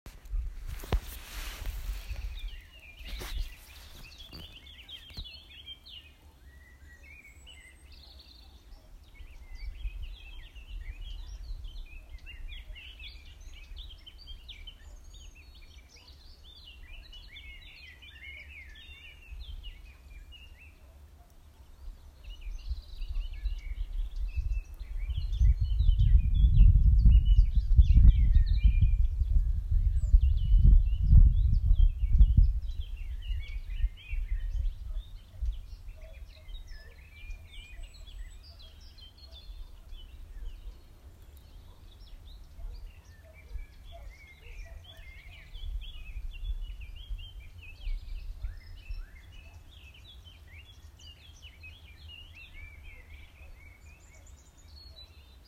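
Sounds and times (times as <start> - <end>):
birds calling: 0.1 - 29.1, 30.0 - 55.4.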